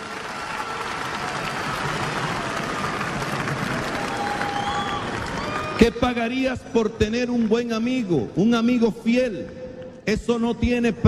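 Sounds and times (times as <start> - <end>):
faint whistles and cheers from the audience: 0.0 - 6.3
audience applause: 0.0 - 6.4
speech: 5.8 - 11.0.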